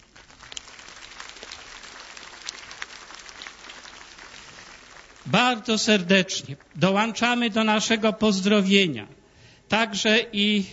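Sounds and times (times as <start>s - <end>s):
short applause from audience: 0.0s - 6.8s
speech: 5.2s - 10.7s.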